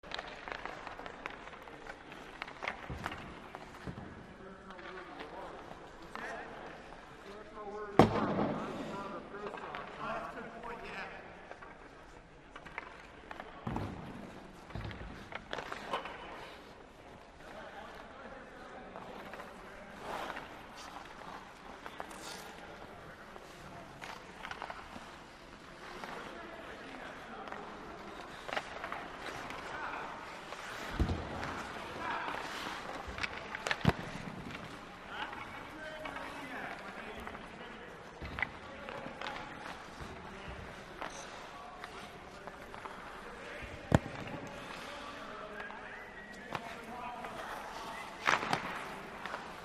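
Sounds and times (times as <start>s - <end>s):
hockey players practicing: 0.0s - 49.6s.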